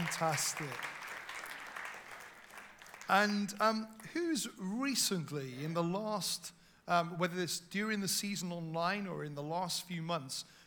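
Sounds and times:
audience cheering and clapping: 0.0 - 3.2
speech: 0.2 - 1.0, 3.1 - 10.6.

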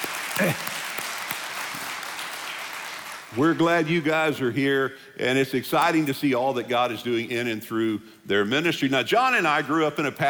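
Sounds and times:
audience applause welcoming the Tarrant County Hands of Hope outreach team: 0.0 - 3.9
speech: 0.4 - 0.8, 3.4 - 10.2.

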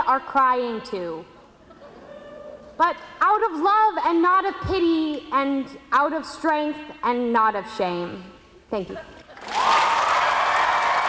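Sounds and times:
speech: 0.1 - 1.4, 2.8 - 9.1
audience applause for a poet: 9.4 - 11.0.

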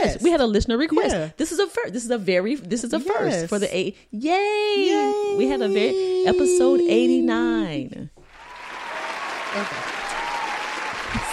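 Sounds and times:
speech: 0.0 - 8.2, 9.5 - 10.0
applause: 8.3 - 11.3.

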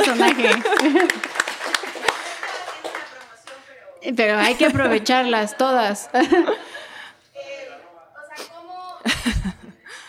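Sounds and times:
laughter: 0.0 - 3.0, 6.0 - 7.0, 9.0 - 10.0
applause: 0.0 - 3.7
speech: 0.1 - 1.3, 4.0 - 6.8.

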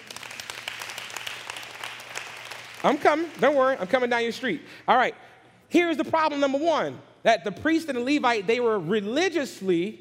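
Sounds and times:
church congregation clapping during a sermon: 0.0 - 4.7
speech: 2.8 - 9.9.

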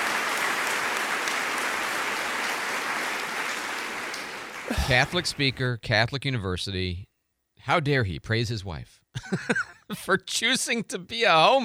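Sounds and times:
audience applause: 0.0 - 5.6
laughter: 4.4 - 5.8, 9.2 - 10.3
speech: 4.7 - 11.6.

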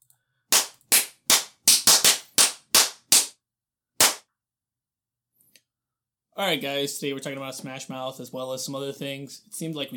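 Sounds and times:
hand claps: 0.5 - 3.4, 4.0 - 4.3
speech: 6.4 - 9.9.

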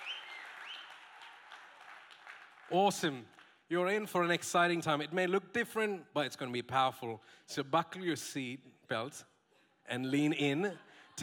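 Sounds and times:
church congregation applauding guest pastors: 0.0 - 3.6
speech: 2.7 - 9.3, 9.9 - 11.2.

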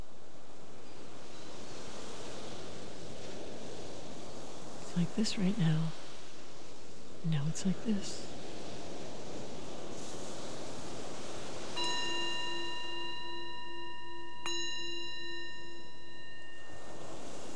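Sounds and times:
hiss: 0.0 - 17.5
speech: 5.0 - 6.0, 7.2 - 8.3
meditation bell ringing: 11.6 - 17.5.

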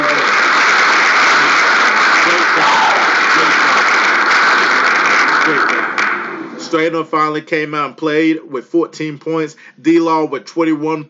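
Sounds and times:
applause: 0.0 - 6.5
speech: 6.7 - 11.0.

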